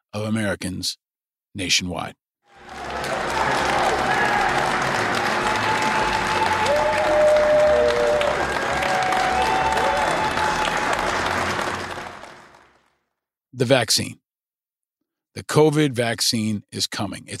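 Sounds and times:
speech: 0.1s - 2.2s, 13.6s - 14.2s, 15.4s - 17.3s
workers shouting and cheering as Pfizer COVID-19 vaccine shipments leave Michigan: 2.5s - 12.7s
workers applauding as first Pfizer COVID-19 vaccine shipments leave Michigan: 2.5s - 12.9s.

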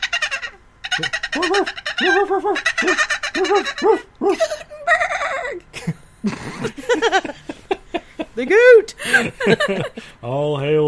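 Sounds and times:
voice imitating dolphin chatter: 0.0s - 5.6s
laughter: 0.9s - 10.1s
speech: 1.0s - 5.6s, 8.4s - 10.8s.

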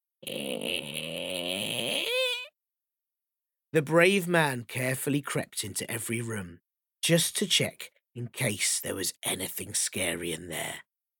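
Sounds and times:
voice imitating a creaking door: 0.2s - 2.6s
speech: 3.7s - 10.9s.

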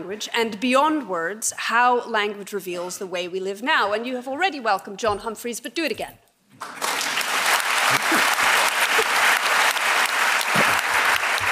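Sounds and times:
speech: 0.0s - 6.8s
crowd clapping: 6.6s - 11.4s.

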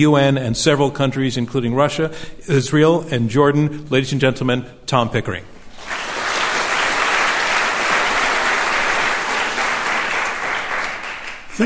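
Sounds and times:
speech: 0.0s - 5.9s
audience applause welcoming Tom Pickering at an Iran nuclear deal debate: 5.7s - 11.6s.

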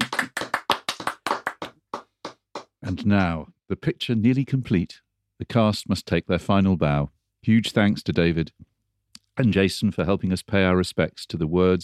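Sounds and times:
crowd applauding in a standing ovation: 0.0s - 3.3s
speech: 2.8s - 8.7s, 9.4s - 11.8s.

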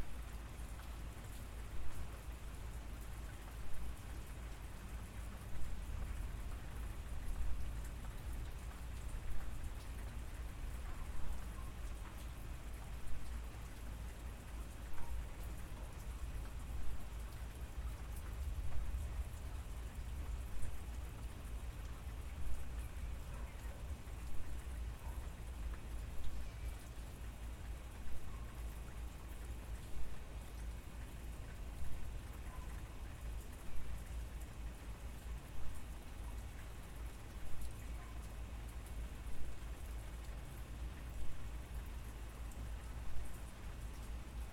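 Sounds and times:
gentle rain: 0.0s - 44.5s.

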